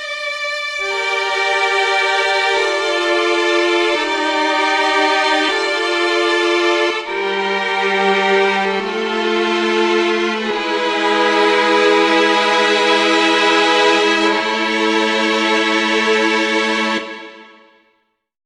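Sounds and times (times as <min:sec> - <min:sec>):
3 violins playing: 0:00.0 - 0:17.7.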